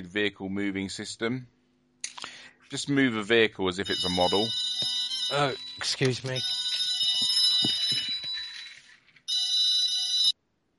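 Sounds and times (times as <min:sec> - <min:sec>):
speech: 0:00.0 - 0:01.6, 0:02.7 - 0:04.7, 0:05.3 - 0:06.6
telephone ringing: 0:03.8 - 0:10.4.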